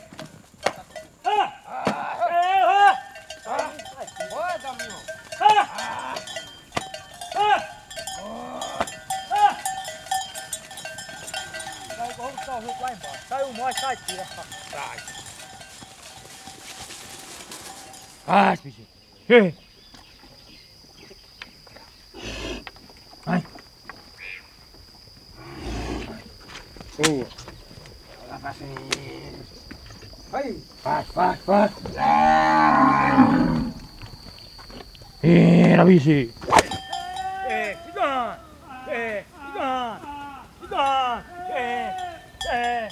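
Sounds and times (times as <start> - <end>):
cowbells clanking: 0.0 - 18.6, 30.8 - 39.2, 40.5 - 42.9
cowherds in northeastern Brazil calling to their herd: 0.0 - 18.7, 30.3 - 42.9.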